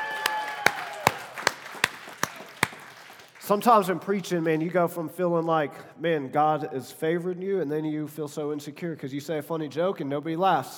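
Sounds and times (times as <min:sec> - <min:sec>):
audience cheering: 0:00.0 - 0:03.2
audience clapping: 0:00.0 - 0:04.8
speech: 0:03.5 - 0:10.7.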